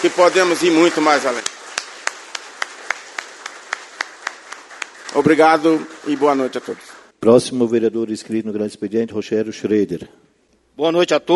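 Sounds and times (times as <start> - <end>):
speech: 0.0 - 1.6, 5.2 - 10.2, 10.8 - 11.3
applause: 0.0 - 7.2.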